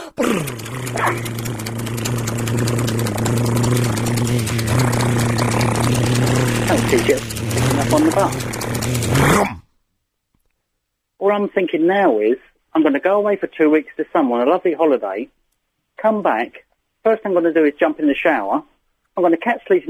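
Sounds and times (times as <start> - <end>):
vocal rolled-tongue drum roll: 0.0 - 9.6
speech: 0.4 - 1.4, 7.9 - 8.6, 11.4 - 15.4, 16.0 - 19.8.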